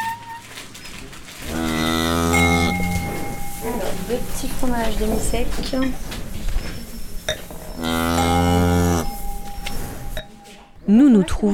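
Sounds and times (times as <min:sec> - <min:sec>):
low rustling: 0:00.6 - 0:10.8
cow mooing on a farm: 0:01.4 - 0:06.2, 0:07.3 - 0:10.3
faint clinks: 0:01.4 - 0:10.9
speech: 0:04.1 - 0:06.2, 0:10.9 - 0:11.5.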